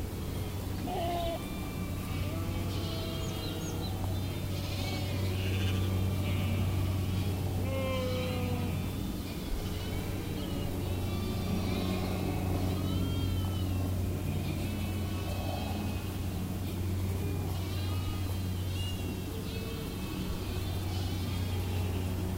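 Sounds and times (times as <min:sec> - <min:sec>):
sheep: 0:00.1 - 0:22.3.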